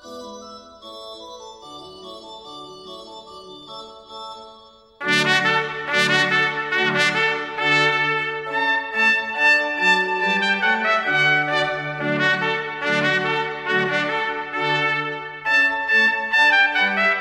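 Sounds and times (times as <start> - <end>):
trumpet playing a rondeau: 5.0 - 17.1.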